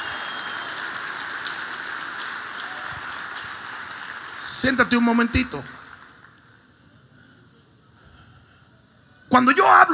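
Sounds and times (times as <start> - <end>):
audience applauding: 0.0 - 6.6
speech: 4.6 - 5.8, 9.4 - 9.9.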